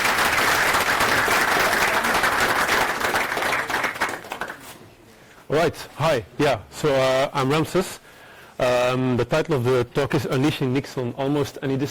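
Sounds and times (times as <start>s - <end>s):
audience applause for a speaker: 0.0s - 4.6s
speech: 5.5s - 8.0s, 8.6s - 11.8s.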